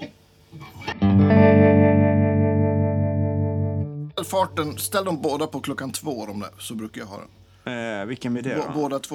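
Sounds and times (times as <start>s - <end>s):
brief scratchy guitar strum: 0.7s - 5.6s
speech: 4.3s - 9.1s.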